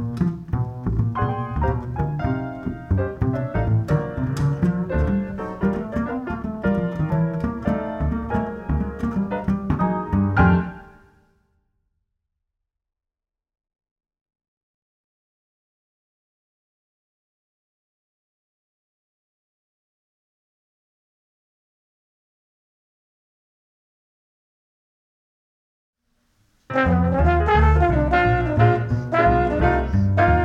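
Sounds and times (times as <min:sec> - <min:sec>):
blues in F at 176 without drums: 0:00.0 - 0:11.1, 0:26.6 - 0:30.4.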